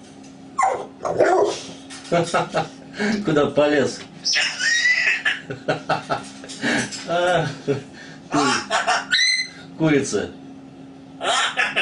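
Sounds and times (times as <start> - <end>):
speech: 2.1 - 4.5, 5.5 - 8.9, 9.8 - 10.4
grey parrot giving harsh spoken-sounding bursts: 4.2 - 5.5, 8.4 - 9.6, 11.2 - 11.8
laughter: 4.6 - 9.1, 11.2 - 11.8.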